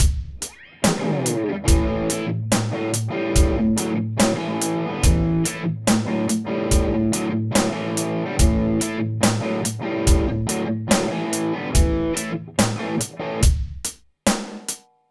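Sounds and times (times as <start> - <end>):
EL84 effects pedal: 0.6 - 13.5.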